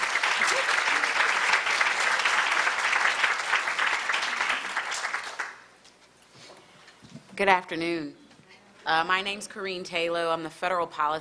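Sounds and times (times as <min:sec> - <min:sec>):
crowd applauding: 0:00.0 - 0:05.7
speech: 0:07.4 - 0:08.2, 0:08.8 - 0:11.1.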